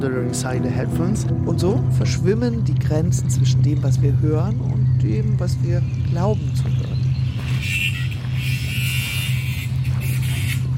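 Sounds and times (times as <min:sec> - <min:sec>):
speech: 0:00.0 - 0:06.9
gardener's angle grinder grinding: 0:07.3 - 0:10.7.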